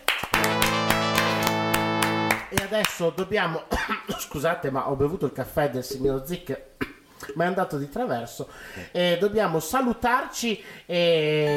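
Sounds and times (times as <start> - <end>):
applause: 0.0 - 3.0
speech: 2.7 - 11.5.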